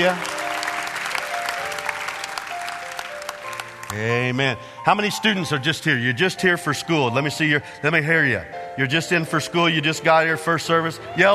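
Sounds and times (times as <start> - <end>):
speech: 0.0 - 0.3, 3.9 - 11.3
audience clapping hands for guests: 0.0 - 4.4.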